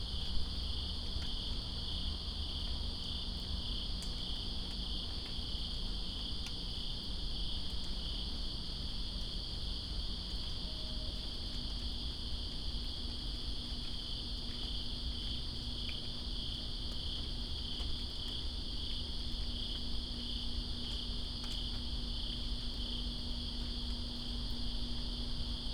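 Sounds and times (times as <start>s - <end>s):
dense cricket chorus trilling: 0.1s - 25.7s.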